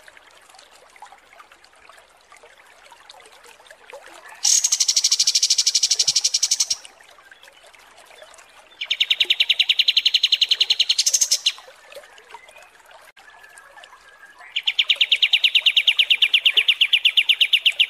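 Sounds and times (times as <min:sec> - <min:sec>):
Kapas tembak trills: 0:04.4 - 0:06.8, 0:08.8 - 0:11.7, 0:14.4 - 0:17.8.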